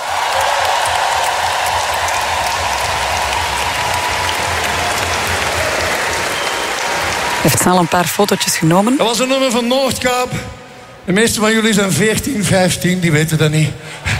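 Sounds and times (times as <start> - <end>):
audience applause: 0.0 - 9.7
speech: 7.4 - 14.1.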